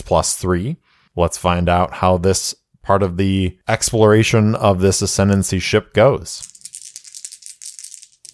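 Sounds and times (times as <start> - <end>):
speech: 0.1 - 6.6
dice being rolled: 6.4 - 8.3.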